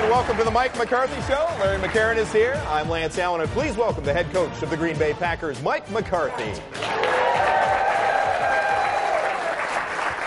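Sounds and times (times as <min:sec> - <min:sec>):
crowd applauding Green Bay Packers head coach Mike McCarthy at a live show: 0:00.0 - 0:02.7, 0:06.6 - 0:10.2
speech: 0:00.1 - 0:07.2.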